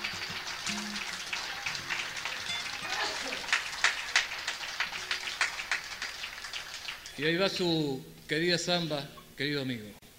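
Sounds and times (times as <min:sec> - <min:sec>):
audience applause: 0:00.0 - 0:07.6
speech: 0:07.2 - 0:10.0.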